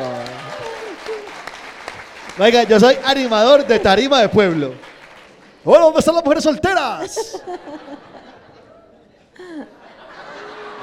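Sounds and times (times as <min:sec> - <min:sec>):
applause: 0:00.0 - 0:06.5
speech: 0:02.4 - 0:04.9, 0:05.6 - 0:08.1
laughter: 0:07.0 - 0:10.8.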